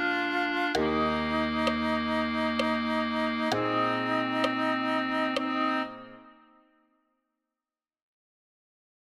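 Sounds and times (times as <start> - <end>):
clarinet: 0.0 - 6.8.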